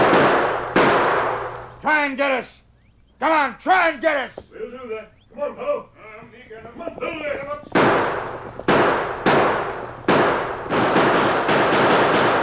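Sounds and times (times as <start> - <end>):
gunfire in a radio western drama set in Tombstone: 0.0 - 1.7, 7.7 - 12.4
speech: 2.0 - 2.6, 3.2 - 5.9.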